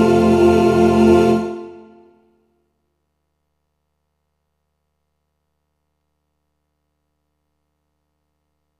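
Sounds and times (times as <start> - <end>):
SATB four-part choir singing: 0.0 - 2.2.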